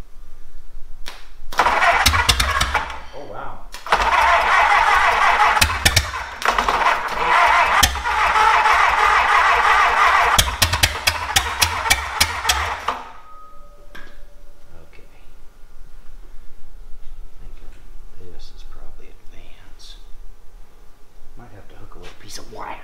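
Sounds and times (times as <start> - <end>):
engine running on top fuel nitromethane starting and roaring: 1.6 - 3.0, 3.8 - 13.2.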